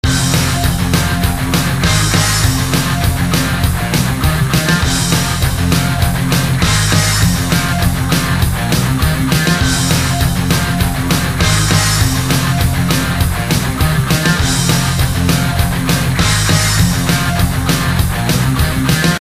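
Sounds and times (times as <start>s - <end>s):
musical riff: 0.0s - 19.1s.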